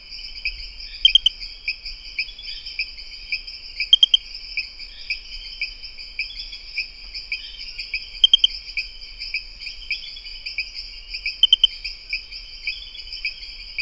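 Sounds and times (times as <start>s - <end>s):
Pristimantis espedeus rain frog calling in high sharp clicks: 1.0s - 1.4s, 3.9s - 4.3s, 8.2s - 8.6s, 11.3s - 11.8s.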